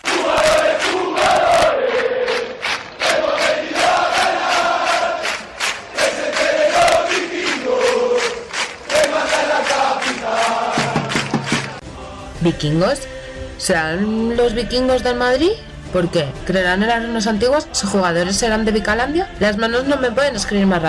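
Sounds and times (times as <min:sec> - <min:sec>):
crowd of fans shouting: 0:00.0 - 0:11.8
speech: 0:12.4 - 0:20.8.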